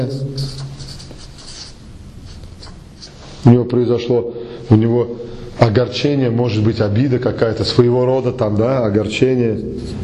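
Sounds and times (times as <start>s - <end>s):
speech: 0.0s - 0.7s, 3.4s - 10.0s
writing scratching: 0.0s - 3.2s, 9.4s - 10.0s.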